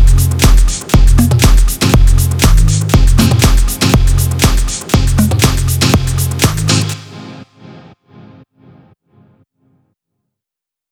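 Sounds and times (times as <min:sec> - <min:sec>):
progressive deep house music: 0:00.0 - 0:07.8.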